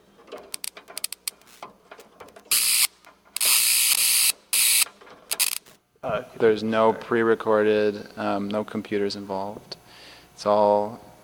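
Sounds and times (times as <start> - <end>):
electric bug zapper arcing against a pencil: 2.5 - 5.8
speech: 6.0 - 9.7, 10.4 - 11.1.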